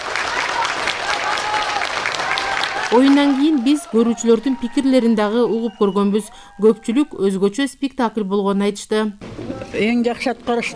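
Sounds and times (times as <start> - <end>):
full theatre audience applauding after a play: 0.0 - 6.3
speech: 2.9 - 10.7.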